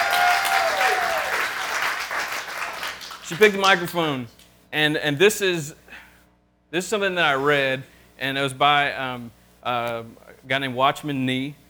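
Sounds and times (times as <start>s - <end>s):
audience applause: 0.0s - 4.3s
speech: 3.3s - 5.8s, 6.7s - 11.6s.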